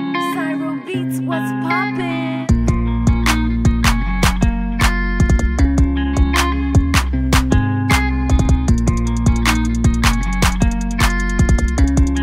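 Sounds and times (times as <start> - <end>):
trap rap instrumental: 0.2 - 12.2.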